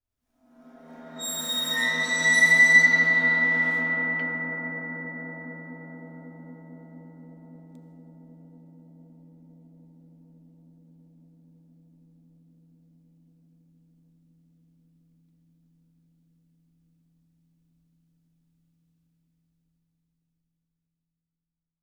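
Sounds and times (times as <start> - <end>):
bowed tam-tam: 0.6 - 6.7.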